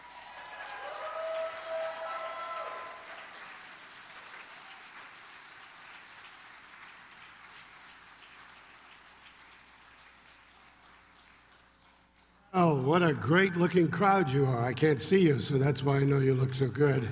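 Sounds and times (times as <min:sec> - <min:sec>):
audience applause: 0:00.0 - 0:12.3
speech: 0:12.6 - 0:17.1.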